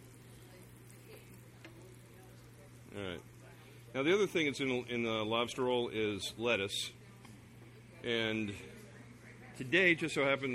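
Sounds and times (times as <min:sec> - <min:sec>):
shrimp sizzling in a frying pan as each is flipped over: 0:00.0 - 0:04.7
speech: 0:03.0 - 0:03.3, 0:03.9 - 0:07.0, 0:08.0 - 0:08.8, 0:09.6 - 0:10.5.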